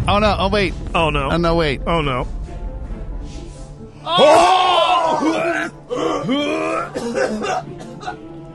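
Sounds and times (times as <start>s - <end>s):
speech: 0.1s - 2.4s, 4.1s - 8.3s
person coughing or sneezing, possibly from allergies: 6.0s - 8.2s.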